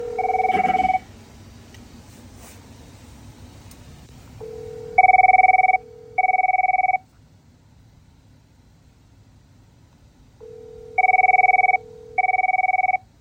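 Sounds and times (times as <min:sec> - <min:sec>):
telephone: 0:00.0 - 0:01.0, 0:04.4 - 0:07.0, 0:10.4 - 0:13.1.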